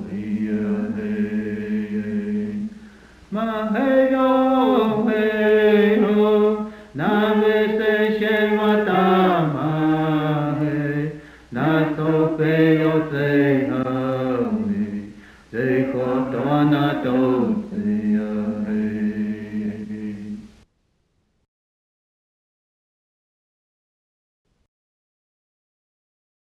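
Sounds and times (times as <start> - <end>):
hymnbook songs sung in the Cheyenne language: 0.0 - 20.5.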